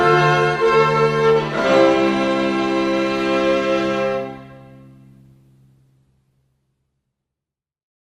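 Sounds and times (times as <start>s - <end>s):
string ensemble playing Shaker melody: 0.0s - 5.7s.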